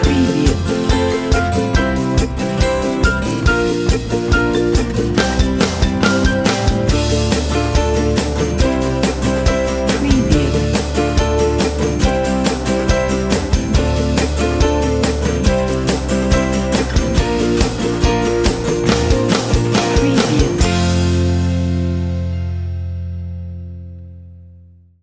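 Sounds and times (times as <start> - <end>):
upbeat ukulele: 0.0 - 22.3.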